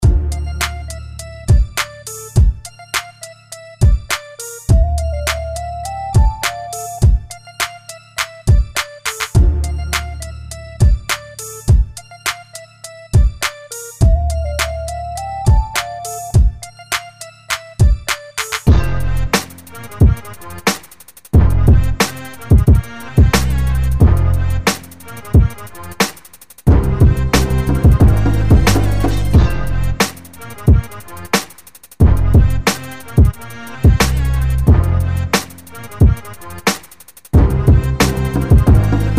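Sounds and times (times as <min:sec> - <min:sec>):
urban music: 0:00.0 - 0:39.1.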